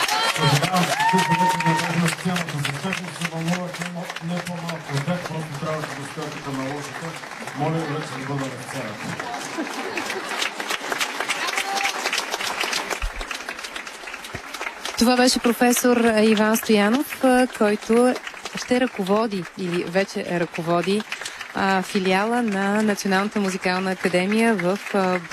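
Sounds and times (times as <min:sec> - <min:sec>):
audience applause: 0:00.0 - 0:25.3
man speaking loudly: 0:00.4 - 0:09.1
laughter: 0:04.8 - 0:11.0
speech: 0:07.6 - 0:10.2, 0:15.0 - 0:25.3.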